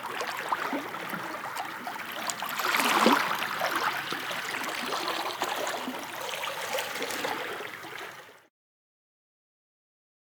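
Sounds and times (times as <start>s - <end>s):
sea in a small bay: 0.0s - 8.3s.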